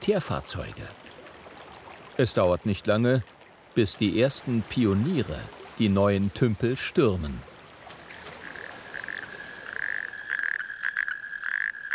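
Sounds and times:
speech: 0.0s - 1.0s, 2.2s - 7.5s
male natterjack toads mating calls: 8.0s - 11.9s.

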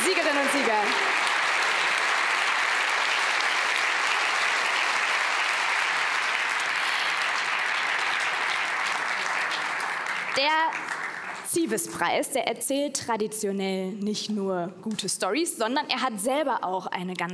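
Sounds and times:
applause: 0.0s - 12.3s
speech: 11.6s - 17.3s.

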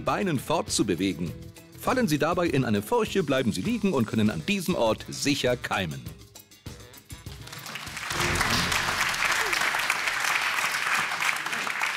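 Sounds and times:
speech: 0.0s - 6.2s
audience clapping: 7.2s - 11.9s.

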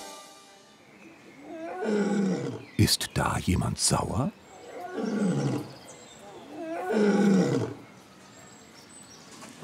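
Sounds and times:
lion roaring: 1.5s - 2.7s, 4.7s - 5.7s, 6.5s - 7.8s
speech: 2.9s - 4.4s.

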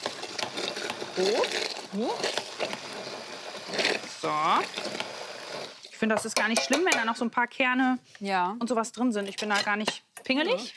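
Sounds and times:
blender puréeing frozen berries: 0.0s - 5.9s
speech: 1.2s - 2.8s, 3.7s - 5.1s, 6.0s - 10.7s.

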